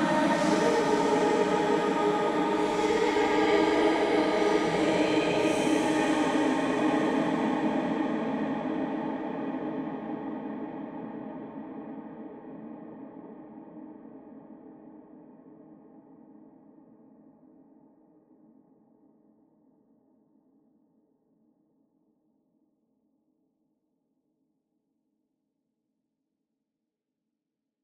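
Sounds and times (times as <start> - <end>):
female vocal with reverb: 0.0 - 9.5.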